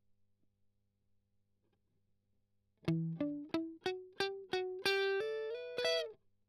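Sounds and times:
strummed octave arpeggio: 0:02.9 - 0:06.1.

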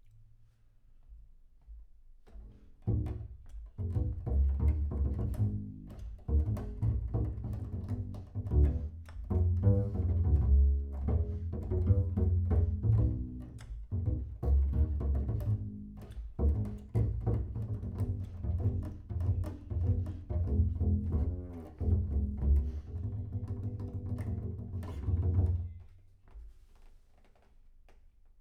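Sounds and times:
bass sound: 0:03.8 - 0:25.7.

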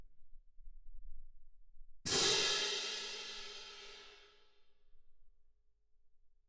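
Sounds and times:
percussion: 0:02.1 - 0:04.4.

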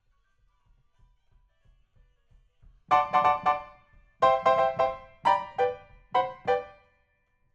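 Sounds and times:
rock and roll piano: 0:02.9 - 0:06.8.

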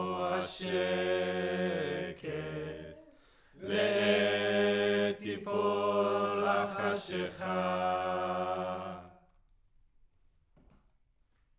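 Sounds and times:
choir singing: 0:00.0 - 0:09.2.

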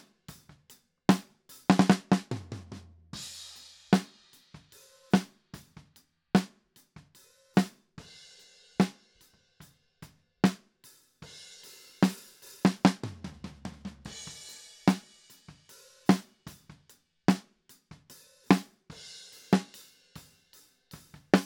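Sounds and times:
snare drum top: 0:01.1 - 0:04.1, 0:12.0 - 0:17.4, 0:18.5 - 0:18.8, 0:19.5 - 0:19.7, 0:21.0 - 0:21.4.

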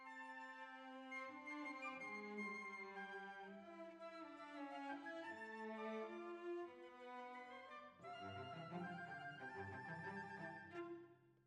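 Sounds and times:
violas: 0:00.1 - 0:11.0.

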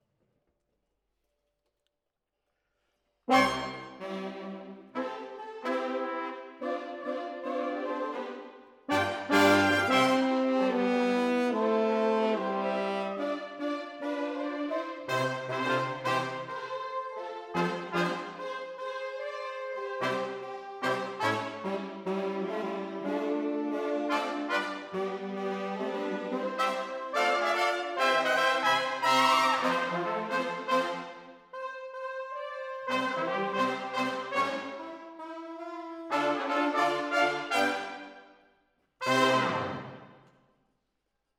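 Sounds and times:
horns playing: 0:03.3 - 0:38.2, 0:39.0 - 0:40.1.

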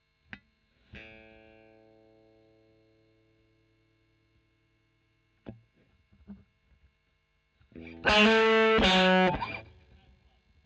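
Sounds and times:
overdriven electric guitar recorded with a Royer microphone: 0:00.3 - 0:02.9, 0:07.7 - 0:10.6.

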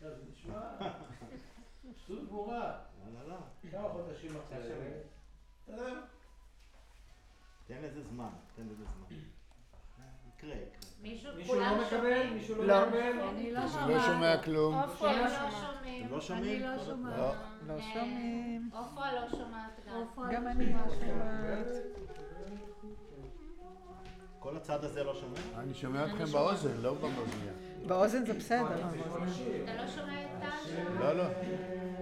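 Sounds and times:
choir singing: 0:11.4 - 0:32.0.

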